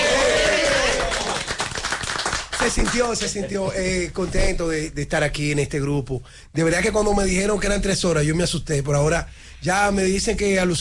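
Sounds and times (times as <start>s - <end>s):
studio applause: 0.0s - 3.4s
speech: 2.6s - 10.7s.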